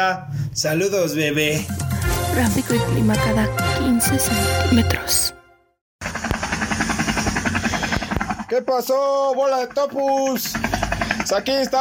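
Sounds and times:
speech: 0.0 - 5.4, 8.5 - 10.7, 11.3 - 11.7
helicopter rotor sound effect: 6.0 - 8.6, 10.0 - 11.7.

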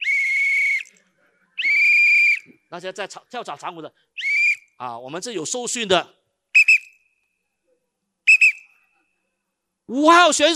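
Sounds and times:
referee whistle blasts: 0.0 - 0.9, 1.6 - 2.5, 4.2 - 4.7, 6.6 - 7.1, 8.3 - 8.8
speech: 2.7 - 4.1, 4.8 - 6.2, 9.9 - 10.5.

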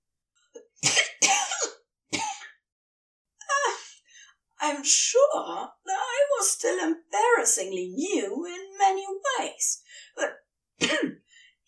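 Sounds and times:
coughing liquid out of the wrong pipes: 0.8 - 2.6, 10.8 - 11.2
speech: 4.7 - 11.6.

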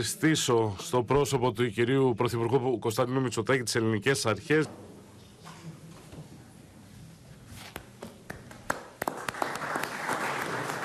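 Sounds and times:
speech: 0.0 - 5.0
applause after leaders' statements: 8.3 - 10.8.

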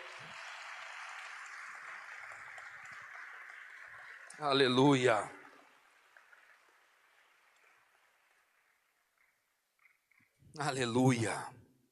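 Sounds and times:
audience applauding: 0.0 - 9.5
speech: 4.4 - 5.4, 10.6 - 11.6.

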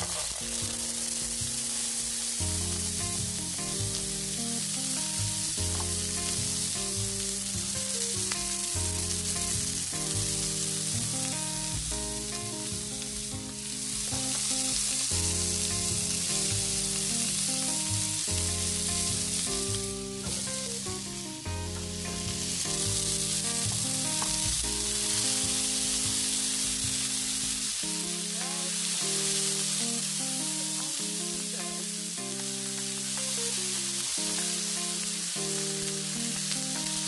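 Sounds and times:
garbanzo beans and sausage sizzling in a frying pan: 0.0 - 37.0
music: 0.0 - 37.0.

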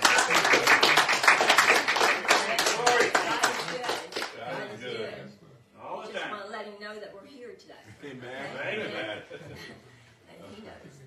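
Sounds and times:
audience hand clapping: 0.0 - 4.5
laughter: 8.0 - 10.0.

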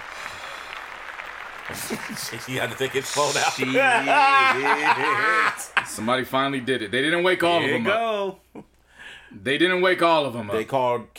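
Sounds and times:
crowd applause: 0.0 - 7.4
laughter: 1.7 - 8.7
speech: 1.7 - 8.7, 9.3 - 11.1.

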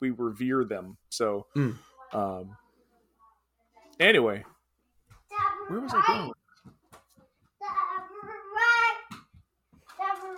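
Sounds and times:
speech: 0.0 - 2.6, 4.0 - 4.5, 5.7 - 6.8
two-year-old toddler babbling: 5.3 - 6.4, 7.6 - 9.1.

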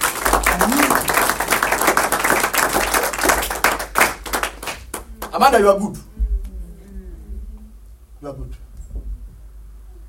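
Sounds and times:
audience clapping: 0.0 - 5.7
speech: 5.4 - 6.1, 8.2 - 8.6.

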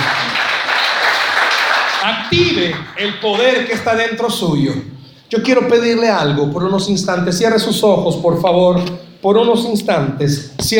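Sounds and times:
audience applauding: 0.0 - 4.1
speech: 2.1 - 10.7.

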